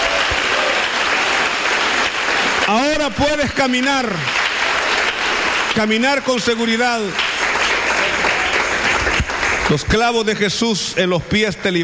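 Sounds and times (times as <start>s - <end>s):
audience applause: 0.0s - 10.4s
speech: 2.7s - 4.4s, 5.8s - 7.3s, 9.7s - 11.8s.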